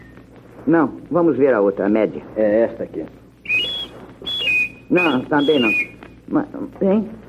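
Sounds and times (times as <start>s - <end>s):
speech: 0.7s - 3.2s, 4.9s - 7.2s
large harmonica playing: 3.5s - 5.9s.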